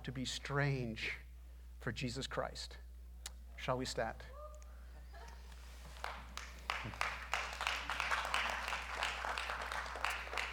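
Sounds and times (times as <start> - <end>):
speech: 0.0 - 1.2, 1.8 - 2.8, 3.6 - 4.4, 6.8 - 7.1
audience clapping: 5.9 - 10.5.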